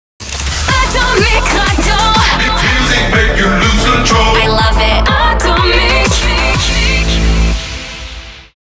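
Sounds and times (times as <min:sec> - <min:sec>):
rhythmic music at 123 bpm: 0:00.2 - 0:08.6.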